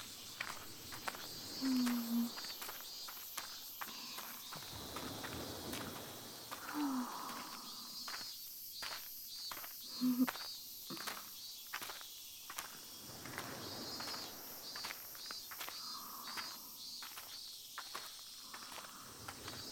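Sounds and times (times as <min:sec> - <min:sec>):
crickets and insects chirping: 0:00.0 - 0:19.7
footsteps walking along a path: 0:00.0 - 0:19.7.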